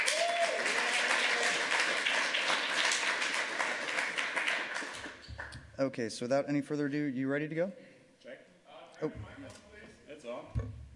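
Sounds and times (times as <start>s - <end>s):
audience applause: 0.0s - 5.6s
speech: 5.8s - 7.9s, 9.0s - 9.6s.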